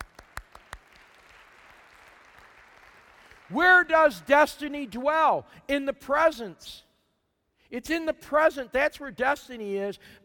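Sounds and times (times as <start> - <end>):
sparse audience claps: 0.0 - 5.0
speech: 3.5 - 6.8, 7.7 - 10.2.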